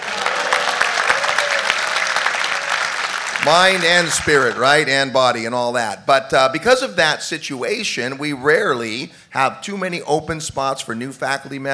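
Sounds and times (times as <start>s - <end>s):
audience applause: 0.0s - 5.1s
speech: 3.4s - 11.7s.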